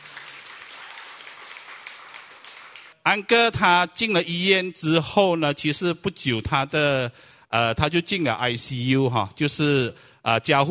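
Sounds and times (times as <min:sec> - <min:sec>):
audience applause: 0:00.0 - 0:03.0
speech: 0:03.1 - 0:10.7.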